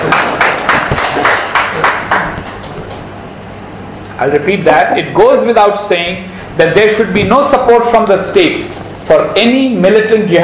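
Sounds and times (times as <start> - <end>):
audience applause: 0.0 - 2.4
speech: 4.2 - 10.4.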